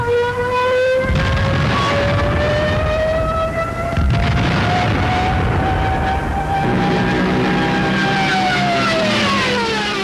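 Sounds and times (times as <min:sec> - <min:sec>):
Stuka dive bomber siren screaming: 0:00.0 - 0:10.0
Stuka dive bomber heavy roaring engine: 0:01.0 - 0:10.0.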